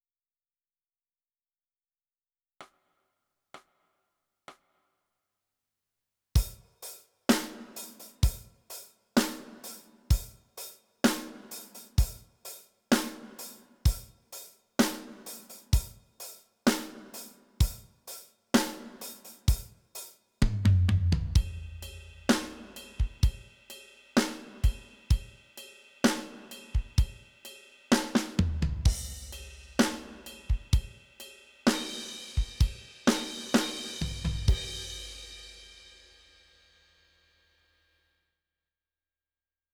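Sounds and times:
drums: 6.4 - 37.6.

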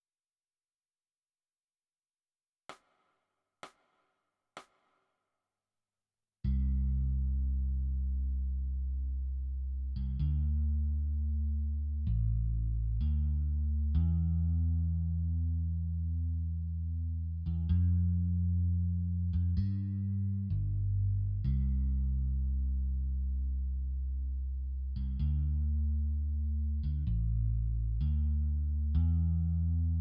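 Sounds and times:
bass: 6.4 - 29.9.

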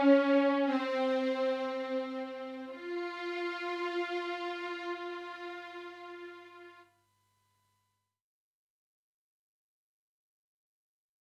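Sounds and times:
solo violin portamento: 0.0 - 6.8.

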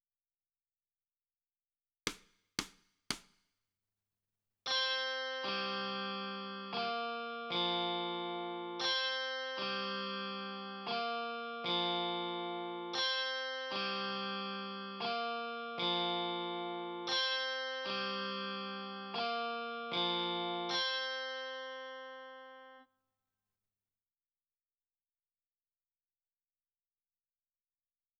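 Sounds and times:
guitar: 4.7 - 22.9.

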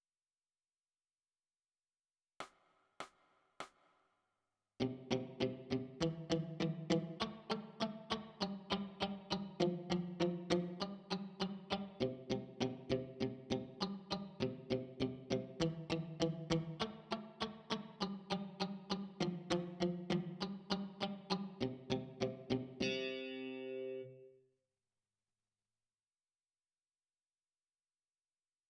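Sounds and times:
electric guitar: 4.8 - 24.4.

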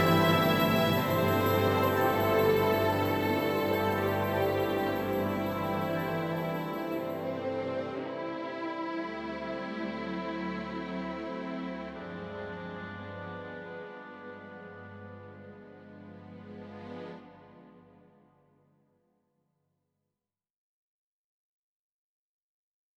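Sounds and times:
full orchestra: 0.0 - 17.9.

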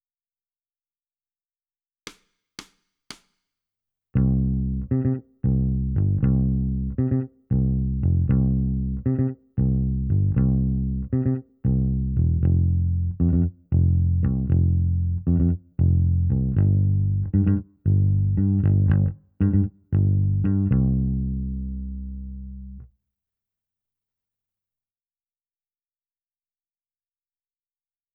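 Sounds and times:
bass: 4.2 - 22.9.

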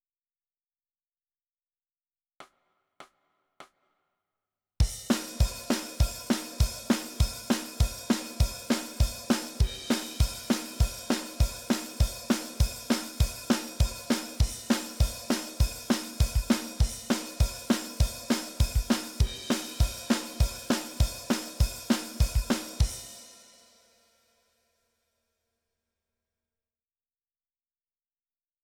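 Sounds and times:
drums: 4.8 - 24.0.

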